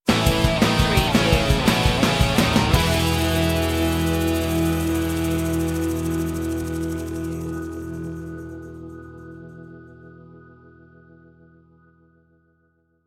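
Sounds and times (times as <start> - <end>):
young and carefree music stinger: 0.1 - 8.0.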